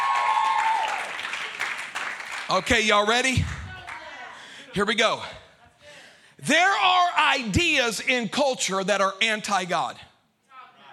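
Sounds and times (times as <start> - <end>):
applause: 0.0 - 4.1
speech: 2.5 - 3.6, 4.7 - 5.4, 6.4 - 10.1.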